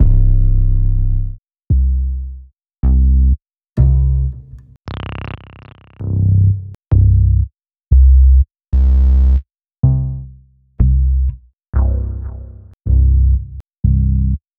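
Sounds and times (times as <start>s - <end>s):
bass: 0.0s - 14.5s.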